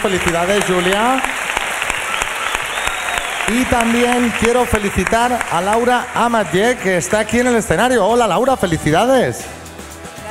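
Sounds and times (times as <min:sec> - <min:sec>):
speech: 0:00.0 - 0:01.4, 0:03.5 - 0:09.6
audience applause: 0:00.0 - 0:07.8.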